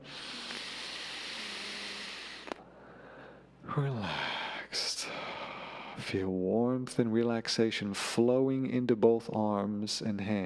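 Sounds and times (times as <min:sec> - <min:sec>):
deep breath during a relaxation exercise: 0:00.0 - 0:06.0
speech: 0:03.8 - 0:04.2, 0:06.1 - 0:10.4.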